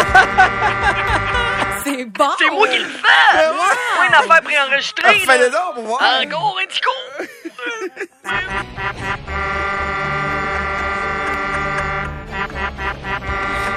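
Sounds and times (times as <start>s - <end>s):
truck horn playing organ tune: 0.0s - 1.8s, 8.3s - 13.7s
laughter: 0.0s - 6.0s, 6.9s - 13.3s
speech: 2.2s - 9.7s.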